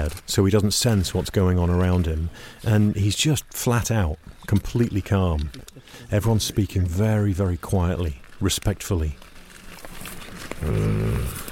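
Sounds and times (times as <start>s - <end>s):
speech: 0.1s - 9.2s, 10.6s - 11.4s
sedated big cat snoring: 10.6s - 11.4s.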